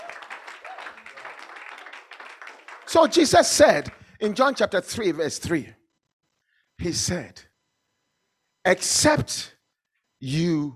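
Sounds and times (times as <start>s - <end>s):
church congregation clapping for the Lord Jesus: 0.0s - 4.8s
speech: 2.9s - 5.8s, 6.8s - 7.5s, 8.7s - 9.6s, 10.2s - 10.7s.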